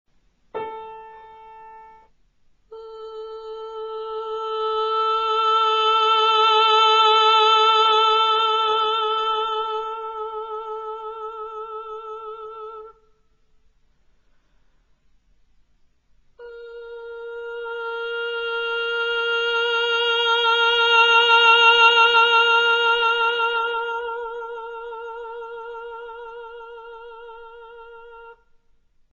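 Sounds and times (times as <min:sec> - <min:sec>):
person singing: 0:02.7 - 0:13.1, 0:16.4 - 0:28.5.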